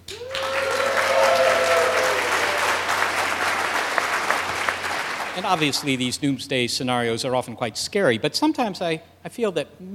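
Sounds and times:
live audience applause at a show recording: 0.1s - 6.1s
speech: 5.4s - 9.9s.

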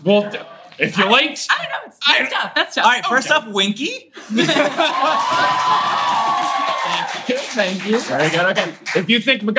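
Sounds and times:
speech: 0.0s - 9.5s
audience applause and cheering with whoops: 4.9s - 7.8s.

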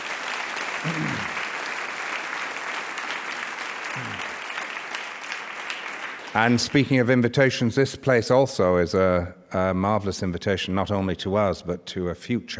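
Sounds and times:
audience round of applause: 0.0s - 7.1s
low vocal murmurs: 0.8s - 1.4s, 3.9s - 4.3s
speech: 0.8s - 1.4s, 6.3s - 12.5s.

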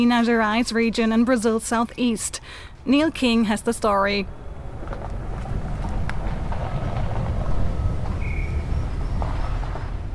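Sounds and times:
speech: 0.0s - 4.4s
gusts of wind: 0.0s - 10.1s
excavators working at a mine: 3.5s - 10.1s.

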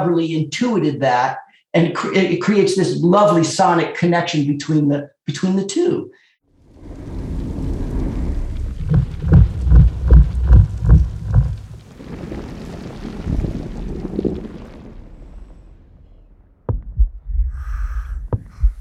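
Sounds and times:
speech: 0.0s - 6.2s
roaring wind-like rumble: 6.6s - 18.7s
sharp crack: 6.7s - 16.8s
thumper device pounding heavy low thuds: 16.7s - 17.3s.

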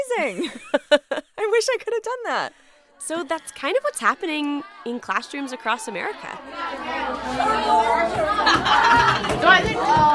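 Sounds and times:
speech: 0.2s - 1.0s, 1.6s - 10.1s
laughter: 0.3s - 1.4s, 7.0s - 10.1s
about 40 middle schoolers chattering in a California classroom: 2.8s - 10.1s.

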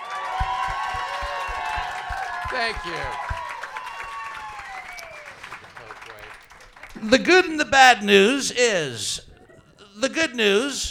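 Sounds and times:
crowd applause: 0.0s - 8.4s
voices cheering: 0.0s - 9.2s
low thumping beat: 0.4s - 3.6s
speech: 2.5s - 3.3s, 7.0s - 9.2s, 10.0s - 10.8s.

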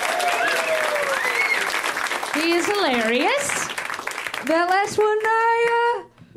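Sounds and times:
crowd clapping: 0.0s - 5.9s
whoops and whistles: 0.2s - 1.8s
speech: 2.4s - 3.6s, 4.4s - 6.0s.

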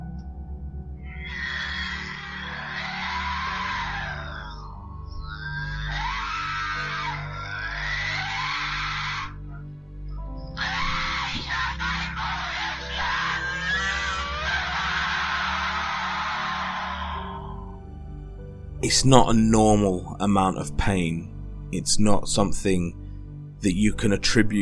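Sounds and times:
woman howling and crying in pain: 1.0s - 9.4s, 10.5s - 17.9s
speech: 18.8s - 23.0s, 23.6s - 24.5s.

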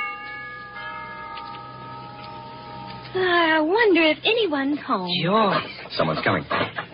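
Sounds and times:
doorbell ringing: 0.0s - 3.6s
speech: 3.1s - 6.8s.

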